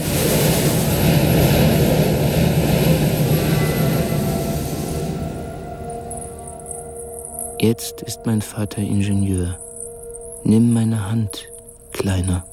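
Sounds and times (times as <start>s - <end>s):
train thundering past: 0.0s - 7.4s
speech: 7.6s - 9.7s, 10.4s - 12.5s.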